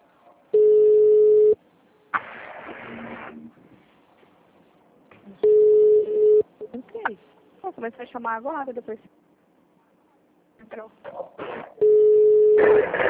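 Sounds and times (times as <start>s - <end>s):
telephone call tones as someone calls in: 0.6s - 1.6s, 5.4s - 6.5s, 11.8s - 12.9s.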